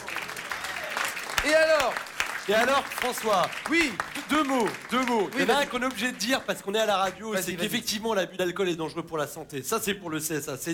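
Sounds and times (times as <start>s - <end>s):
audience applause for the Paillasson festival: 0.0s - 7.2s
speech: 1.4s - 10.7s.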